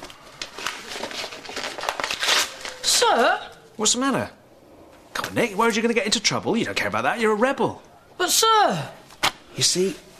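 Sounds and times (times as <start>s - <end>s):
school books torn up: 0.0s - 3.3s
speech: 3.0s - 4.4s, 5.3s - 9.0s, 9.6s - 10.1s.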